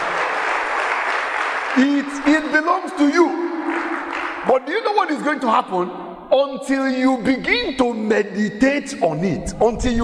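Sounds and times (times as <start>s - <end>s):
audience applause: 0.0s - 4.6s
speech: 1.8s - 3.8s, 4.4s - 10.0s.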